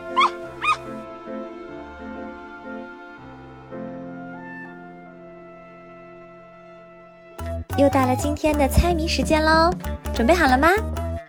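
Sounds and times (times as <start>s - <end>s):
small dog barking happily: 0.1s - 0.8s
speech: 7.8s - 11.0s.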